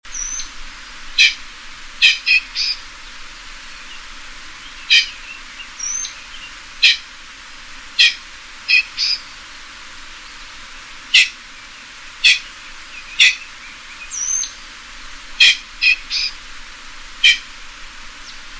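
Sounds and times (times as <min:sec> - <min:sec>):
pheasant harsh calls: 0:01.2 - 0:01.4, 0:02.0 - 0:02.9, 0:04.6 - 0:07.1, 0:08.0 - 0:09.3, 0:11.0 - 0:14.7, 0:15.3 - 0:16.4, 0:17.2 - 0:17.6.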